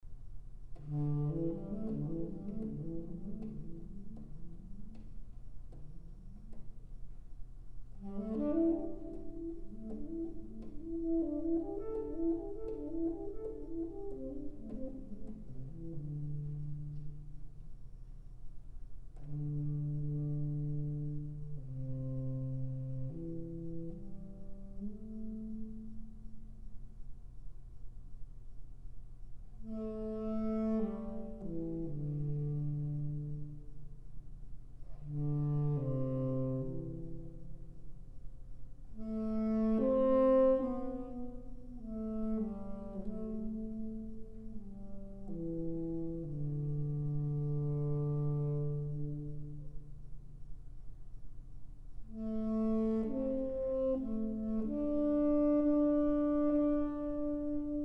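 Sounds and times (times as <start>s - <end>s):
saxophone improvising a hymn: 0.8s - 5.1s, 8.0s - 17.3s, 19.2s - 26.2s, 29.6s - 33.7s, 34.9s - 37.6s, 39.0s - 49.7s, 52.1s - 57.8s.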